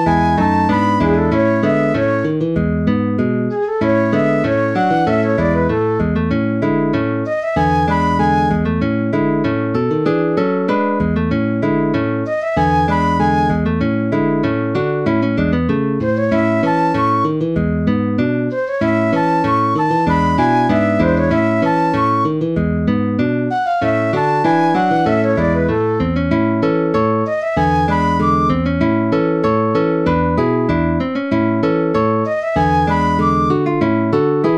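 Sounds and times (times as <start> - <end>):
flute in a duet in A major: 0.0 - 2.6, 3.5 - 9.5, 12.2 - 14.7, 16.0 - 17.8, 18.5 - 22.7, 23.5 - 30.4, 31.8 - 34.5
guitar in a duet in A major: 0.0 - 34.5.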